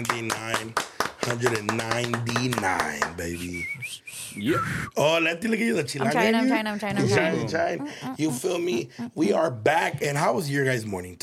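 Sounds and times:
people clapping hands: 0.0 - 3.6
speech: 0.0 - 11.2
laughter: 1.2 - 3.7, 6.0 - 9.6.

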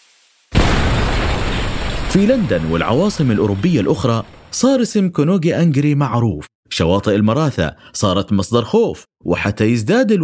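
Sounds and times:
barrels of gunpowder exploding aboard a wooden ship: 0.5 - 4.6
speech: 2.1 - 10.2.

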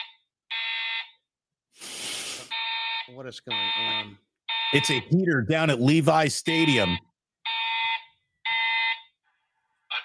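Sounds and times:
fire alarm going off at Levi's Stadium: 0.0 - 1.3, 2.5 - 5.1, 6.5 - 9.2
speech: 3.1 - 7.1.

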